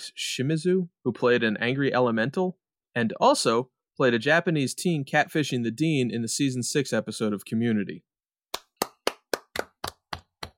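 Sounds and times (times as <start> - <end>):
speech: 0.1 - 8.1
hand clapping: 8.5 - 10.5.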